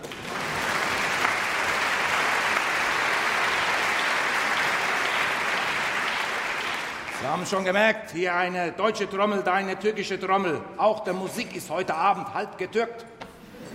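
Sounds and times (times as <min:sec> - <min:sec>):
applause: 0:00.0 - 0:07.7
speech: 0:07.3 - 0:13.1.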